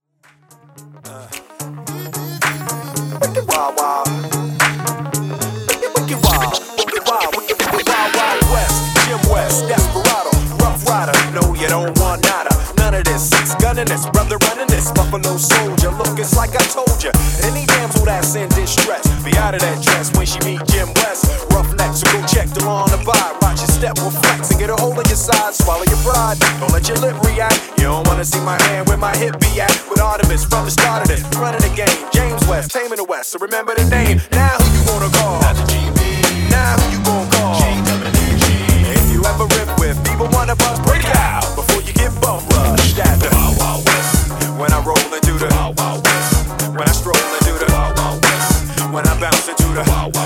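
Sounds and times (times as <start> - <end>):
musical beat: 0.2 - 33.1, 33.8 - 50.2.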